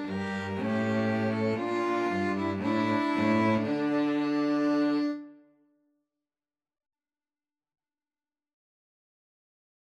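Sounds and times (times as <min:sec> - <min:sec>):
two violins playing a pastorale: 0:00.0 - 0:05.4
cello playing a pastorale: 0:00.0 - 0:05.5.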